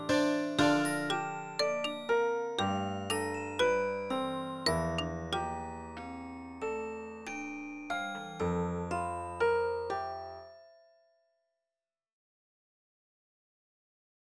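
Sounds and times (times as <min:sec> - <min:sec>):
percussive keyboard: 0:00.0 - 0:09.6.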